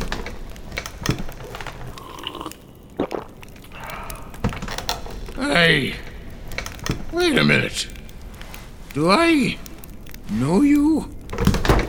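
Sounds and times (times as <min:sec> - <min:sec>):
wooden chair creaking as a person sits up: 0:00.0 - 0:11.8
speech: 0:05.7 - 0:06.0, 0:07.3 - 0:08.0, 0:09.0 - 0:09.6, 0:10.3 - 0:11.4.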